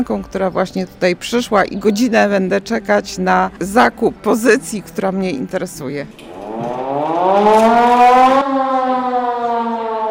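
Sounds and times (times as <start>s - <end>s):
speech: 0.0s - 8.7s
civil defense siren wailing: 6.2s - 10.0s.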